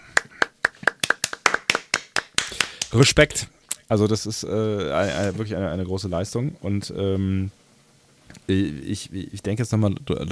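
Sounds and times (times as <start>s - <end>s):
hand claps from a few people: 0.0s - 3.0s
speech: 2.9s - 7.6s, 8.5s - 10.3s.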